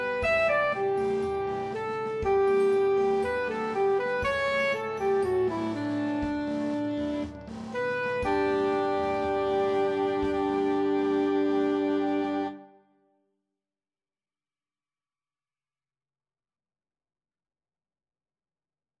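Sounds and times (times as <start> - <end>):
soprano saxophone in B-flat: 0.0 - 12.7.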